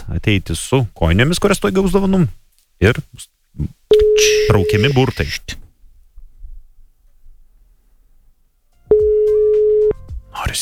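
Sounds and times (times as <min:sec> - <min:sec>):
speech: 0:00.1 - 0:05.6, 0:10.4 - 0:10.6
telephone ringing tone: 0:03.9 - 0:05.4, 0:08.9 - 0:10.0.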